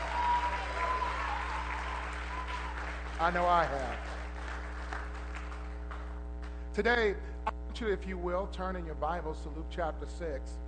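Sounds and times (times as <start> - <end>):
audience hand clapping: 0.0 - 6.2
speech: 3.2 - 4.1, 6.8 - 10.6.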